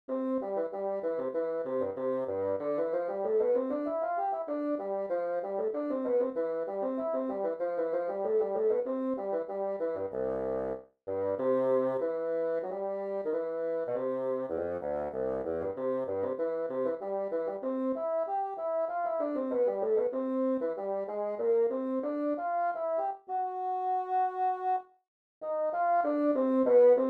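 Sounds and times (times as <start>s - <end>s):
bassoon: 0.1s - 24.8s, 25.4s - 27.0s.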